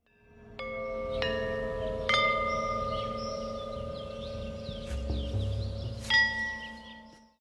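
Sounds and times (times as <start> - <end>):
bells ringing: 0.1 - 7.4.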